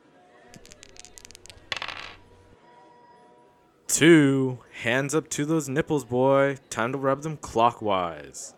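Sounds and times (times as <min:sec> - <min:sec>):
dice being rolled: 0:00.5 - 0:02.6
speech: 0:04.0 - 0:08.5.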